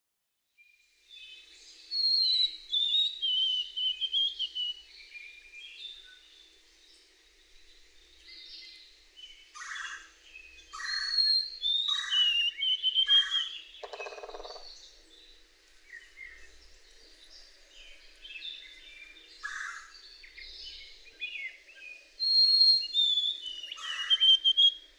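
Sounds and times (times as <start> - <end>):
White-throated sparrow whistled song: 1.2 - 6.2, 10.6 - 14.7, 20.2 - 24.9.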